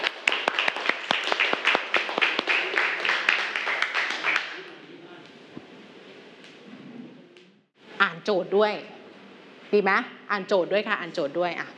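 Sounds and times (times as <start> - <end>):
classroom clapping for classmates: 0.0 - 4.7
speech: 8.1 - 9.0, 9.7 - 11.7.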